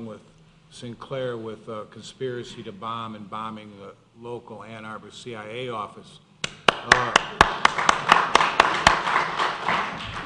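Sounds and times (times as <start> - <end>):
speech: 0.0 - 6.2, 6.8 - 8.1
tepid audience applause: 6.4 - 10.2.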